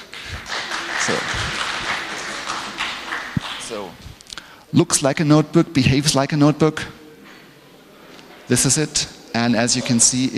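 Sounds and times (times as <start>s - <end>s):
audience applause: 0.0s - 3.9s
speech: 1.1s - 1.4s, 4.7s - 7.0s, 8.5s - 10.3s.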